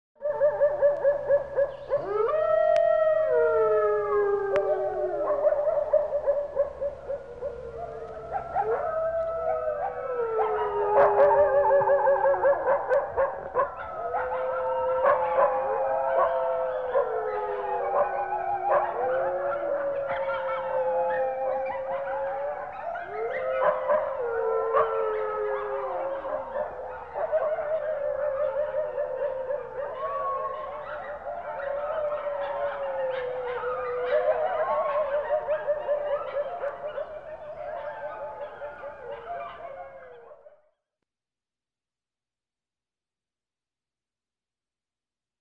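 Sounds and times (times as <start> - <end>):
dogs howling: 0.2 - 40.5.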